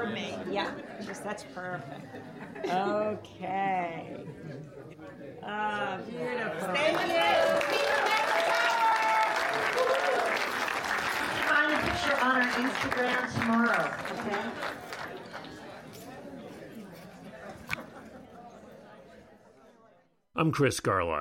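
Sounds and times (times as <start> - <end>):
people chattering: 0.0 - 8.9, 11.1 - 20.2
speech: 0.2 - 8.5, 11.7 - 14.8, 20.4 - 21.1
laughter: 0.6 - 3.2, 4.0 - 5.0, 16.8 - 19.2
crowd applauding and cheering at a sold-out film screening: 6.8 - 15.7.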